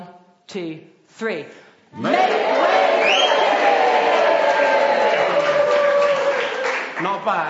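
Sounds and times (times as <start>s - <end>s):
speech: 0.5s - 3.5s, 7.0s - 7.4s
audience cheering and shouting: 2.0s - 6.8s
audience clapping: 2.0s - 7.4s.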